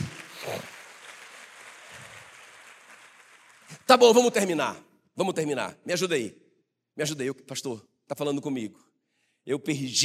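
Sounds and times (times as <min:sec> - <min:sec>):
audience applause: 0:00.0 - 0:03.9
speech: 0:03.9 - 0:06.4, 0:07.0 - 0:10.0.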